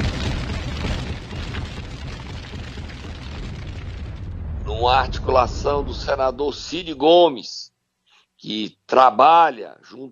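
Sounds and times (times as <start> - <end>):
bomb explosion: 0.0 - 7.0
low rumbling and crackling debris: 0.0 - 7.0
speech: 4.8 - 7.7, 8.4 - 10.1.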